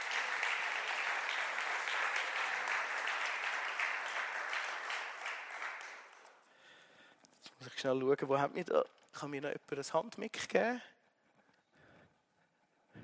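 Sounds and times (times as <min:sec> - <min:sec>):
audience clapping: 0:00.0 - 0:06.5
speech: 0:07.8 - 0:10.9.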